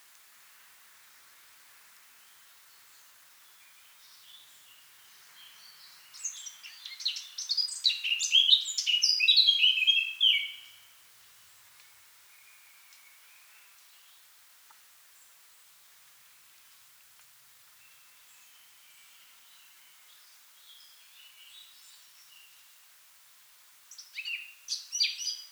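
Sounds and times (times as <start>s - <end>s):
Eurasian blackcap Sylvia atricapilla giving warbled phrases: 6.2s - 10.6s, 23.9s - 25.5s.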